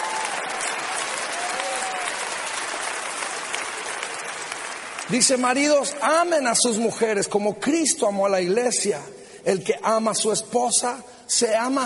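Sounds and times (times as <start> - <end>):
audience of women applauding: 0.0 - 5.5
speech: 5.1 - 11.8.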